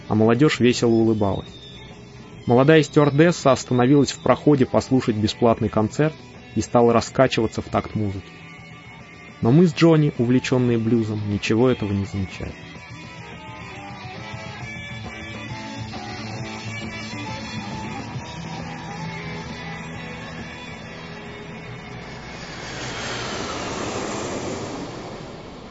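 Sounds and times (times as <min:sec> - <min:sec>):
airplane landing at Kennedy airport in New York: 0:00.0 - 0:25.6
speech: 0:00.1 - 0:01.6, 0:02.4 - 0:08.4, 0:09.4 - 0:12.7.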